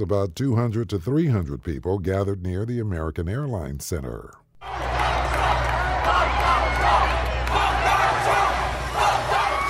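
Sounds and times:
speech: 0:00.0 - 0:04.8
protest crowd chanting: 0:04.6 - 0:09.6.

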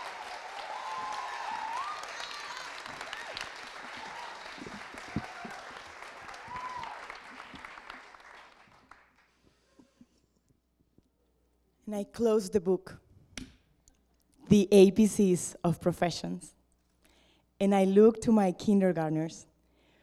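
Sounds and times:
audience applause welcoming an elementary school teacher: 0:00.0 - 0:09.3
speech: 0:11.9 - 0:13.0, 0:14.5 - 0:16.6, 0:17.6 - 0:19.5.

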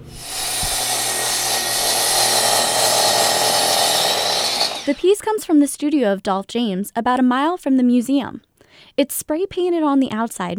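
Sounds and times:
power saw cutting steel: 0:00.0 - 0:05.1
speech: 0:04.9 - 0:10.5.

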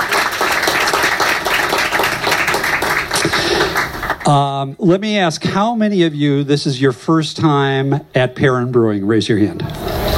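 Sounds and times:
audience applause: 0:00.0 - 0:04.4
speech: 0:04.3 - 0:09.8.

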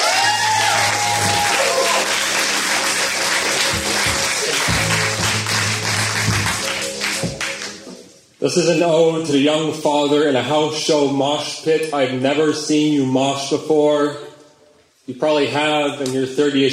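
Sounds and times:
audience clapping: 0:00.0 - 0:08.1
speech: 0:08.4 - 0:14.3, 0:15.1 - 0:16.7.

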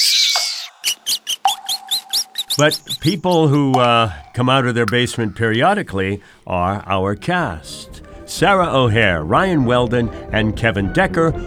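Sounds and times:
rats squealing: 0:00.0 - 0:05.6
water dripping: 0:00.0 - 0:11.4
speech: 0:02.6 - 0:11.4.

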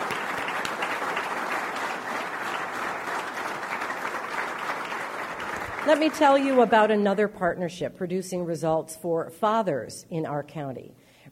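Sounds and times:
large audience applause: 0:00.0 - 0:06.8
speech: 0:05.8 - 0:11.3.

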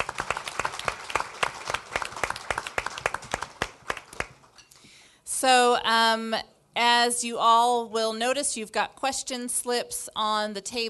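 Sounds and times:
audience applause: 0:00.0 - 0:04.5
speech: 0:05.4 - 0:10.8.

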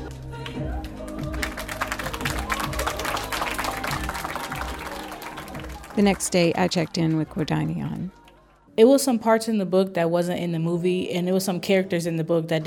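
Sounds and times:
courtesy claps from students: 0:00.5 - 0:08.4
speech: 0:06.0 - 0:08.2, 0:08.8 - 0:12.6.

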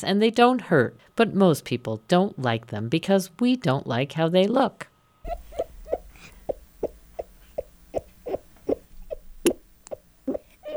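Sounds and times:
speech: 0:00.0 - 0:05.4
toad calling: 0:05.3 - 0:10.7.

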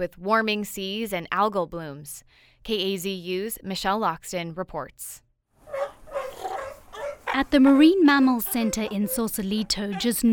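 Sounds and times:
speech: 0:00.0 - 0:05.2, 0:07.4 - 0:10.3
sea lions barking: 0:05.7 - 0:10.3.

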